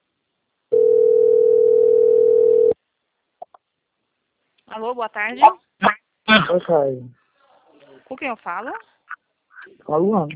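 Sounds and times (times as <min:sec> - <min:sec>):
ringback tone from an outgoing telephone call: 0:00.7 - 0:02.8
speech: 0:04.8 - 0:07.2, 0:08.1 - 0:08.9, 0:09.8 - 0:10.3.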